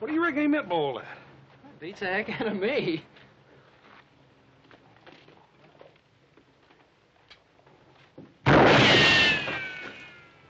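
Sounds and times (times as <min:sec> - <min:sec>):
speech: 0:00.2 - 0:01.2, 0:01.8 - 0:03.2
gunshot: 0:08.4 - 0:10.2.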